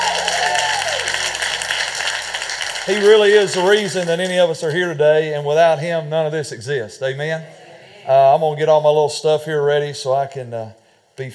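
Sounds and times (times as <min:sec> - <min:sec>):
audience applause: 0:00.0 - 0:04.6
speech: 0:02.9 - 0:11.3.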